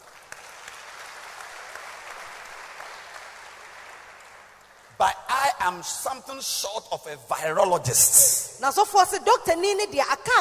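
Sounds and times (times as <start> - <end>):
audience clapping: 0.0 - 5.0
speech: 5.0 - 10.3.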